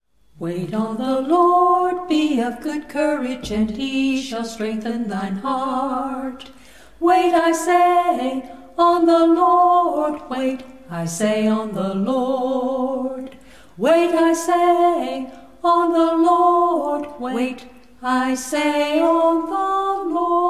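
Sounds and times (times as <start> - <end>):
a cappella scripture song: 0.4 - 20.4.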